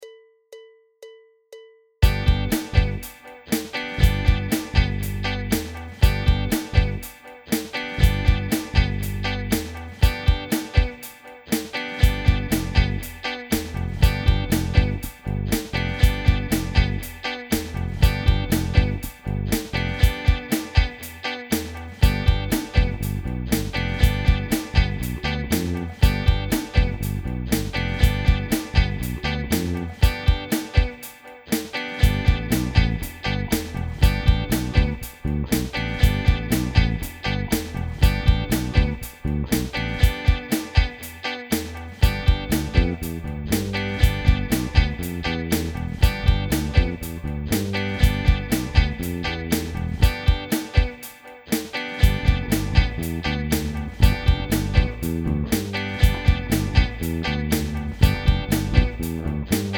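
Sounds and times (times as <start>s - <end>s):
improvisation over G7: 0.0s - 59.7s.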